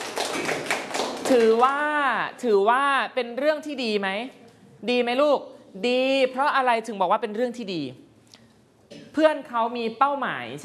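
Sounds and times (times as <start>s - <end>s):
children clapping for a classmate: 0.0s - 1.7s
speech: 1.3s - 8.0s, 9.2s - 10.6s.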